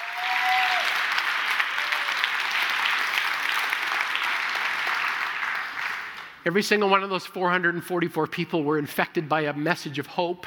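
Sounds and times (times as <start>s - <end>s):
church audience applauding: 0.0s - 6.4s
speech: 6.4s - 10.4s.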